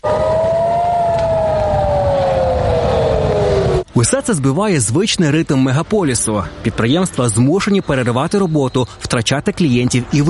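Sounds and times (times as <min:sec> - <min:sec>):
air raid siren wailing: 0:00.0 - 0:03.9
speech: 0:04.0 - 0:10.2.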